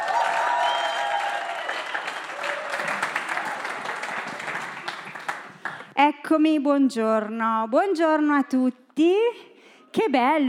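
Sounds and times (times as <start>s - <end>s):
audience applause: 0.0s - 5.9s
speech: 6.0s - 10.4s.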